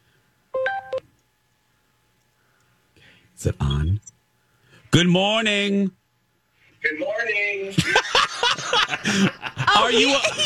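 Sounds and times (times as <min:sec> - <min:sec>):
telephone ringing: 0:00.6 - 0:01.0
speech: 0:03.4 - 0:04.1, 0:04.9 - 0:06.0, 0:06.8 - 0:10.4
laughter: 0:07.8 - 0:10.4.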